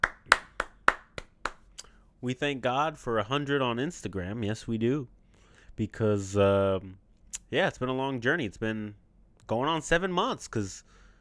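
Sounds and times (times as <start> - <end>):
handclaps: 0.0 - 1.9
speech: 2.2 - 5.2, 5.8 - 11.0.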